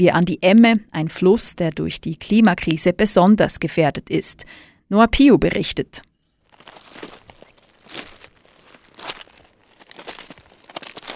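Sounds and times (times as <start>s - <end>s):
speech: 0.0s - 6.1s
footsteps crunching over riverbed stones: 6.4s - 11.1s.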